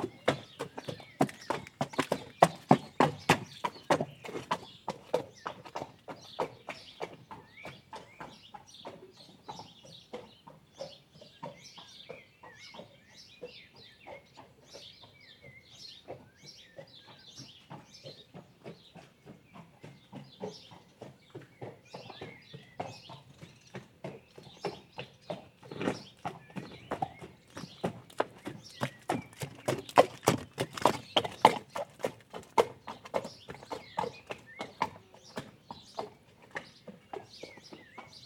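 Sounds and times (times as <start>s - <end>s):
horse riding soundscape: 0.0s - 38.2s.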